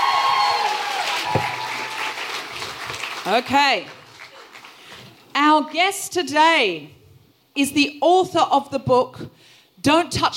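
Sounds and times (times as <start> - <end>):
live audience applauding: 0.0 - 5.0
low thump: 1.3 - 1.7
speech: 3.2 - 4.0, 5.4 - 7.0, 7.6 - 10.3.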